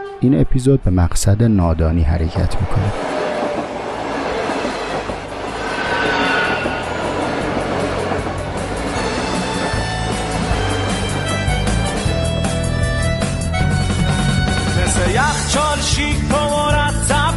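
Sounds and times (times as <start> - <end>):
speech: 0.2 - 3.2
train rumbling along rails: 2.5 - 17.2
high metallic whines from the wheels: 3.0 - 14.7.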